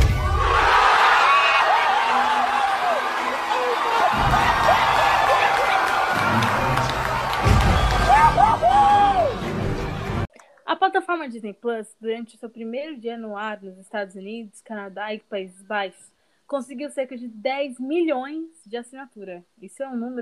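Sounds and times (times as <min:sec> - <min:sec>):
cinema audience cheering and whooping during the Avengers' final fight with Thanos: 0:00.2 - 0:10.2
cinema audience laughing: 0:03.2 - 0:08.8
speech: 0:11.3 - 0:20.2.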